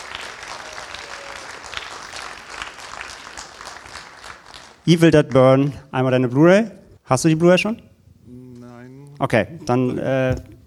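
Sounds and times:
audience applause: 0.0s - 4.8s
speech: 4.8s - 7.9s, 9.2s - 10.6s.

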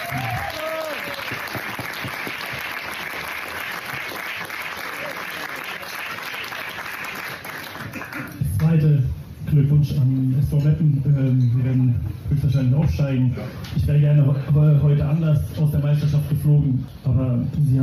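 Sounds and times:
audience applause: 0.0s - 8.4s
speech: 9.9s - 17.8s.

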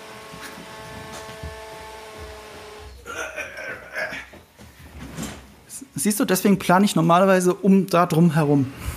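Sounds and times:
robot vacuum cleaner starting up: 0.0s - 3.0s
speech: 6.0s - 8.8s.

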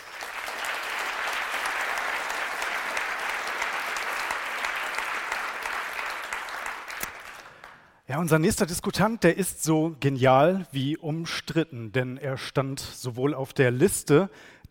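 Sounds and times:
audience applause: 0.0s - 7.9s
speech: 8.1s - 14.6s.

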